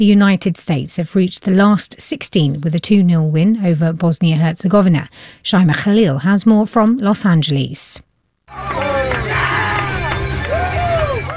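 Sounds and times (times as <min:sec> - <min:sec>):
speech: 0:00.0 - 0:09.6
fans cheering at LA Galaxy Park watch party: 0:08.5 - 0:11.3.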